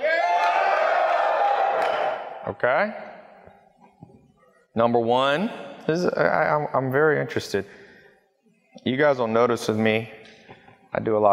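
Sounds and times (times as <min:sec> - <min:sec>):
audience yelling and whooping: 0:00.0 - 0:02.4
speech: 0:02.5 - 0:03.1, 0:04.8 - 0:07.8, 0:08.8 - 0:10.2, 0:10.9 - 0:11.3.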